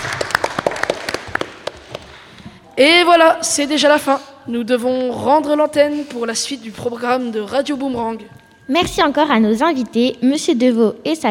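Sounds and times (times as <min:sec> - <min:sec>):
applause: 0:00.0 - 0:02.4
speech: 0:02.8 - 0:11.2.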